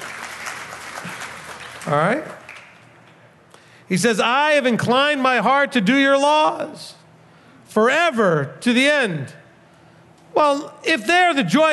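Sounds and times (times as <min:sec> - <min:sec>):
a few listeners clapping during a religious talk: 0:00.0 - 0:03.2
speech: 0:01.9 - 0:02.4, 0:03.9 - 0:07.0, 0:07.7 - 0:09.4, 0:10.4 - 0:11.7.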